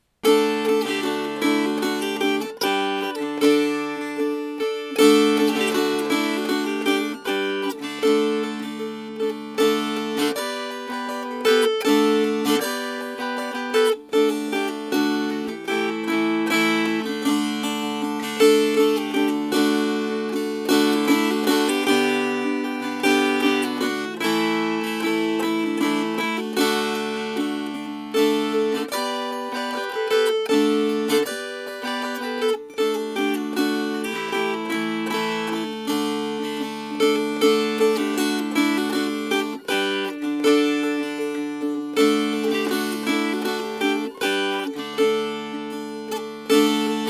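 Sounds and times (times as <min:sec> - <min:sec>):
strummed strings: 0:00.0 - 0:47.0.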